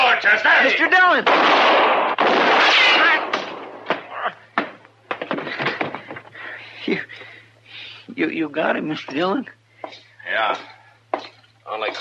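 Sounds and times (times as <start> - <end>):
men talking urgently: 0.0 - 1.3, 11.7 - 11.9
speech: 0.2 - 1.8, 8.2 - 10.8
gunshots in a Western shootout: 1.2 - 4.0.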